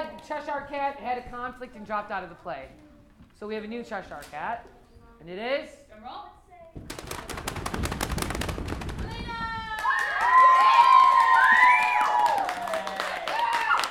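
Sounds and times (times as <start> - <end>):
speech: 0.3 - 6.9
drumroll: 6.8 - 11.8
excited cheering and high-pitched shouting voices: 9.0 - 13.8.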